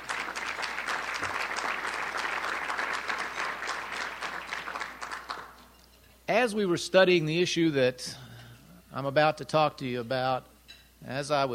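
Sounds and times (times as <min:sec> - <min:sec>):
audience applause at a youth-organization speech event: 0:00.0 - 0:05.6
speech: 0:06.4 - 0:08.2, 0:09.0 - 0:11.5.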